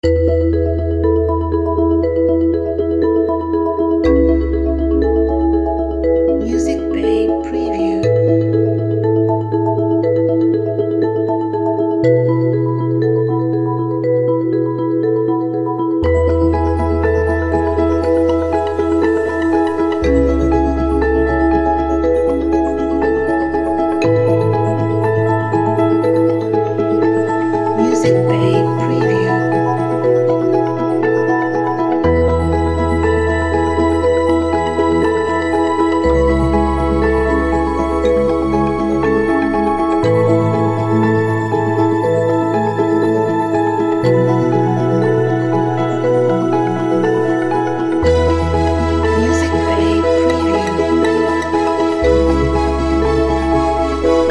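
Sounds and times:
calm music: 0.0s - 54.2s.

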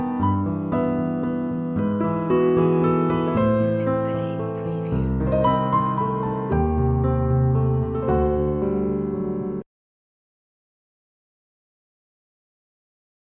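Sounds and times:
classical wedding piano music: 0.0s - 9.6s.

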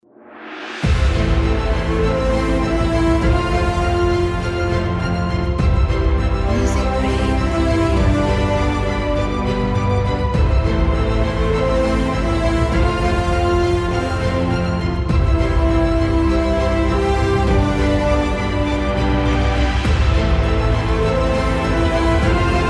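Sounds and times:
epic cinematic trailer intro music: 0.2s - 22.6s.

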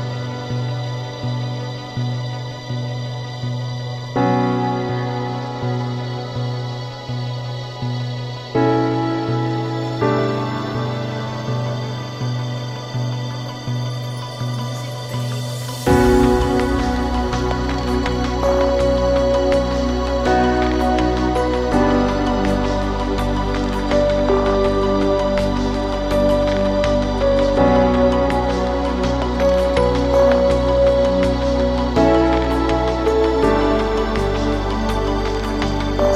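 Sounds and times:
ambient piano space soundscape: 0.0s - 36.1s.

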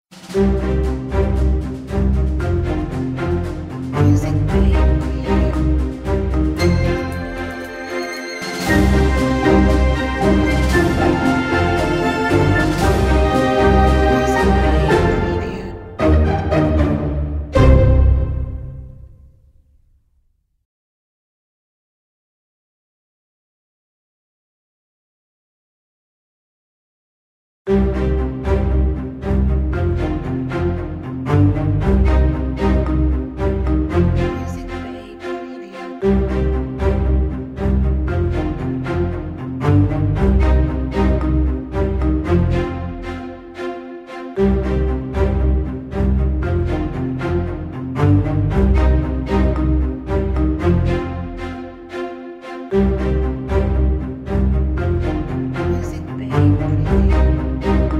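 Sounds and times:
orchestral logo music: 0.1s - 19.4s, 27.7s - 57.9s.

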